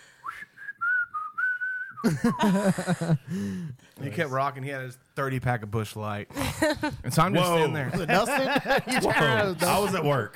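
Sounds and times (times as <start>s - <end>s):
person imitating an over-aggressive redneck-style whistle: 0.1s - 2.5s
laughter: 2.0s - 3.4s, 6.4s - 10.3s
speech: 2.0s - 10.3s.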